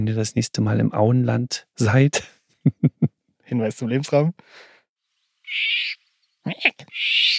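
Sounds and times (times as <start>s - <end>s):
speech: 0.0s - 2.9s, 3.5s - 4.7s, 5.5s - 7.3s
harsh raspy screeching and croaking bird calls: 5.4s - 7.3s.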